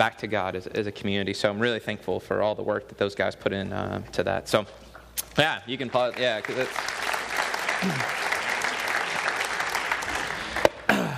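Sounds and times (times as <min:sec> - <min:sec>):
speech: 0:00.0 - 0:07.0, 0:07.8 - 0:08.2
audience applause: 0:05.7 - 0:11.1.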